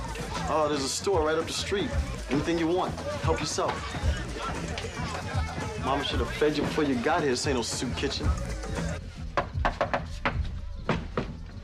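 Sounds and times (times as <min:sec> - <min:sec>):
speech: 0:00.5 - 0:08.9
knocking on a door: 0:09.4 - 0:11.3.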